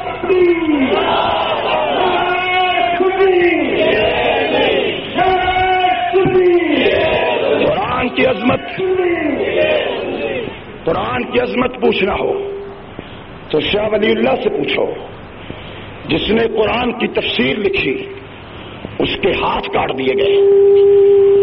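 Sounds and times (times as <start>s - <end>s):
speech: 0.2s - 1.3s, 8.2s - 9.7s, 10.9s - 12.5s, 13.5s - 15.1s, 16.1s - 18.1s, 19.2s - 21.3s
crowd chanting religious slogans at a sermon: 0.7s - 3.0s, 3.5s - 10.6s.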